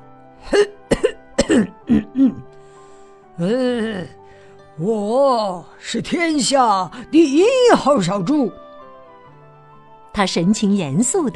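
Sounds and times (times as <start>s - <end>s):
throat clearing: 0.4s - 2.5s
speech: 0.5s - 0.8s, 4.8s - 8.6s, 10.2s - 11.3s.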